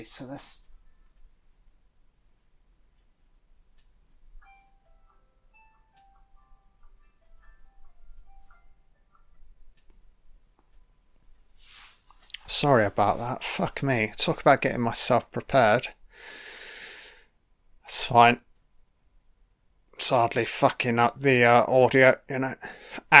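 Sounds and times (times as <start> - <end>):
speech: 0.0 - 0.7, 12.5 - 16.4, 17.9 - 18.5, 20.0 - 23.1
alarm playing a soft tinkling electronic melody: 4.4 - 9.5.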